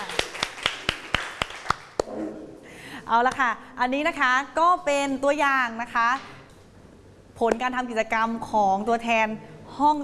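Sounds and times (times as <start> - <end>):
classroom applause: 0.0 - 2.1
speech: 3.1 - 6.4, 7.4 - 10.0.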